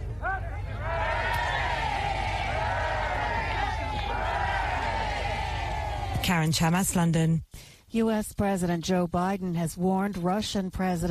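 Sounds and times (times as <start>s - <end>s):
large crowd cheering for the new king: 0.0s - 6.5s
speech: 6.3s - 11.0s.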